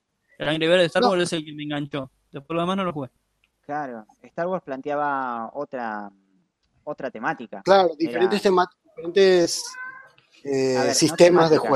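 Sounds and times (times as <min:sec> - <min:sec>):
speech: 0:00.4 - 0:06.2, 0:06.8 - 0:11.7
laughter: 0:00.5 - 0:03.0, 0:07.7 - 0:08.6, 0:09.2 - 0:09.7, 0:10.5 - 0:11.7
pet cat meowing wanting affection: 0:09.4 - 0:11.7.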